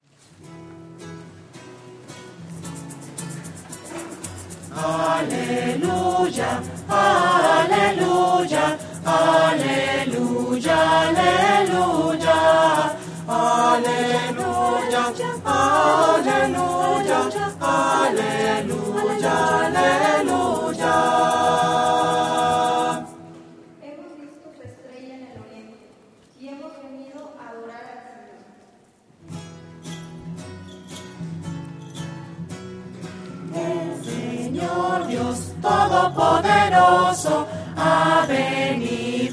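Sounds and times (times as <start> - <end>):
voices singing alleluia: 4.5 - 23.4, 33.4 - 39.3.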